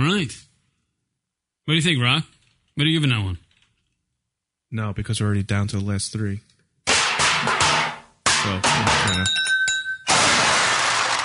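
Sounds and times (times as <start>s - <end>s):
speech: 0.1s - 0.5s, 1.7s - 3.4s, 4.7s - 6.5s, 8.4s - 9.4s
glass shattering on the floor: 6.9s - 11.2s.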